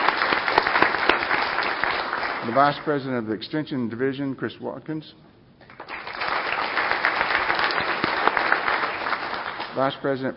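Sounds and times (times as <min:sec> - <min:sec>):
round of applause: 0:00.0 - 0:02.9, 0:05.7 - 0:10.0
speech: 0:02.4 - 0:05.3, 0:09.8 - 0:10.3.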